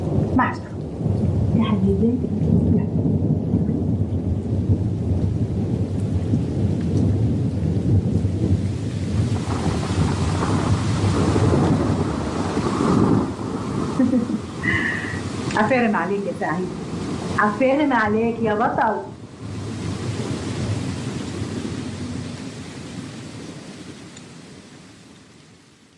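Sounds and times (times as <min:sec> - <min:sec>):
thunder rumbling through a heavy rainstorm: 0:00.0 - 0:24.6
steady rain hiss: 0:00.0 - 0:25.9
speech: 0:01.8 - 0:03.2, 0:15.6 - 0:16.8, 0:17.4 - 0:19.1.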